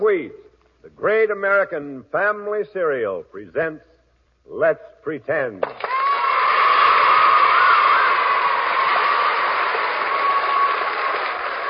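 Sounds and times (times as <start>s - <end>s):
speech: 1.0s - 3.9s, 4.5s - 6.0s
studio audience applause: 5.7s - 11.6s.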